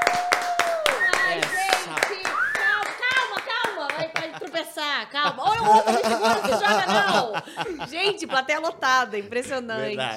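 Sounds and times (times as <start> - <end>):
audience clapping hands: 0.0 - 4.8
laughter: 3.8 - 8.8
speech: 5.0 - 10.1.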